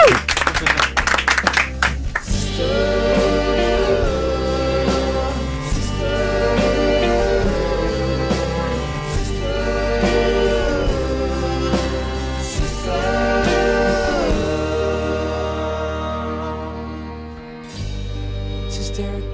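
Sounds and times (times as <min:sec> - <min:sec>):
audience applause: 0:00.0 - 0:02.4
loud music with steady bass line: 0:00.0 - 0:19.2.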